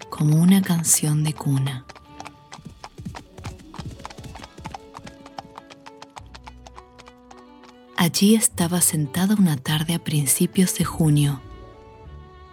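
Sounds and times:
horse hooves clip-clopping on dirt: 0.0 - 8.5
speech: 0.2 - 2.0, 8.1 - 11.5.

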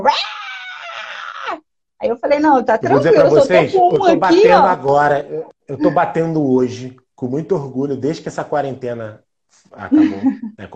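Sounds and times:
speech: 0.0 - 0.4, 2.0 - 10.7
cat yowling from another room: 0.0 - 1.6
laughter: 2.9 - 6.6, 9.8 - 10.7.

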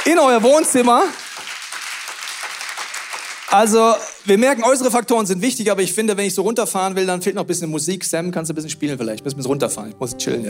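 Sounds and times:
speech: 0.0 - 1.2, 3.5 - 10.4
audience applause: 0.0 - 5.0.

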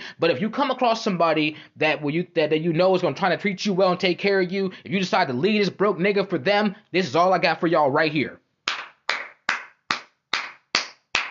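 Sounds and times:
speech: 0.2 - 8.4
hand claps: 8.6 - 11.2.

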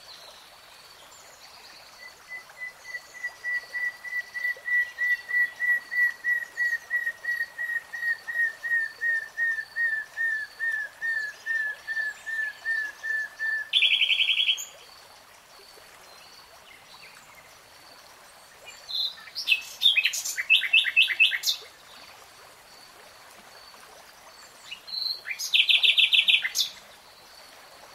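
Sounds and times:
nightingale song: 1.0 - 14.8, 18.6 - 22.1, 23.7 - 27.3.

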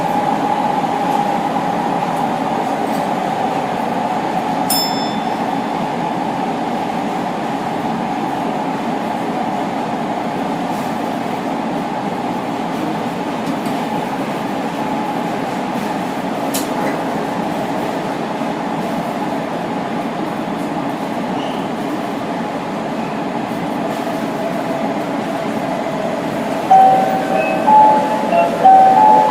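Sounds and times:
Osaka Imazatosuji line subway train rumble: 0.0 - 29.3
short bright tones: 26.7 - 29.3.

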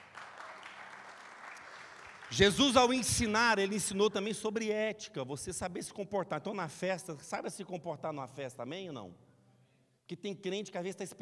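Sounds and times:
crowd clapping: 0.0 - 3.5
speech: 2.3 - 9.2, 10.1 - 11.2.

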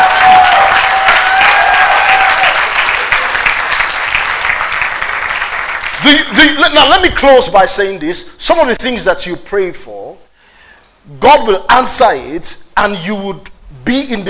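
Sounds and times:
audience clapping: 0.0 - 6.4
speech: 6.3 - 10.0, 11.2 - 14.2.

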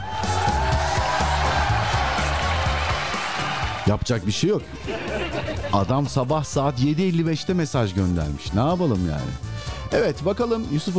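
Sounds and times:
applause sound effect: 0.2 - 3.9
speech: 3.9 - 10.9
laughter: 4.6 - 6.3.

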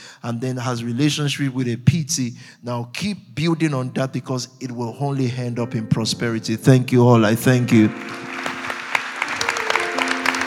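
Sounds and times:
speech: 0.2 - 8.3
audience clapping: 7.7 - 10.4.

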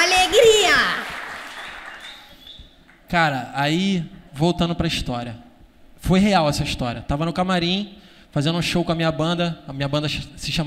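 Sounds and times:
applause: 0.0 - 3.0
speech: 3.1 - 10.6.

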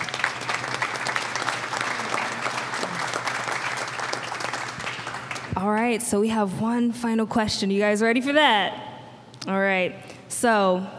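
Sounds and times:
audience applause: 0.0 - 5.6
speech: 5.6 - 8.8, 9.4 - 10.9.

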